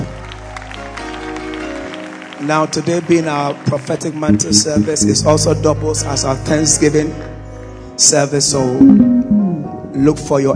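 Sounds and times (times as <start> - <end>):
audience clapping: 0.0 - 7.4
speech: 2.4 - 7.4, 8.0 - 10.5.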